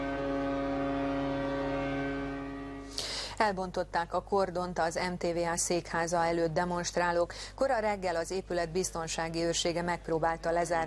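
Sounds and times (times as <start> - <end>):
ship and locomotive horns sounding: 0.0 - 3.1
speech: 3.4 - 10.8.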